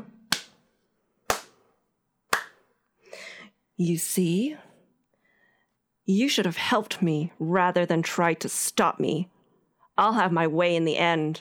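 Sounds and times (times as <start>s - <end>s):
slow handclaps from an elf in a cage in a fantasy tabletop game scene: 0.3s - 0.6s, 1.3s - 1.6s, 2.3s - 2.6s
speech: 3.8s - 4.7s, 6.1s - 9.4s, 10.0s - 11.4s.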